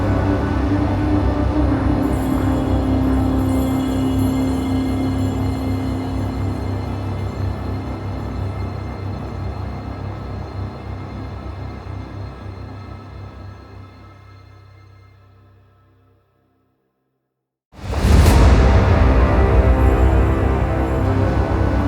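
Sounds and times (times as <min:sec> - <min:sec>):
back room reveal end stinger: 0:00.0 - 0:09.1, 0:18.0 - 0:21.8.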